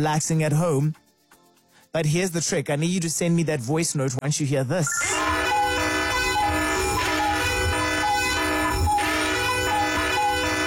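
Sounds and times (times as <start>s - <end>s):
speech: 0.0s - 1.0s, 1.9s - 5.3s
very loud alarm signal: 4.9s - 10.6s.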